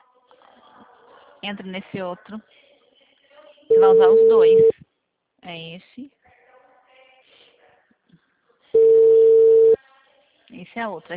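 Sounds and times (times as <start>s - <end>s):
speech: 1.4s - 2.7s, 3.8s - 4.8s, 5.5s - 6.2s, 10.6s - 11.1s
telephone busy signal: 3.7s - 4.7s, 8.8s - 9.8s.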